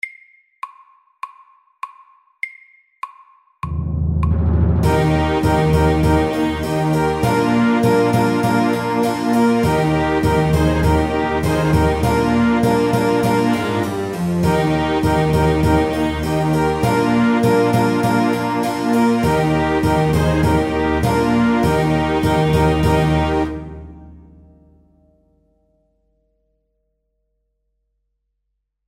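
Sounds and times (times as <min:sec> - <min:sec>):
prelude music: 0:03.6 - 0:26.1.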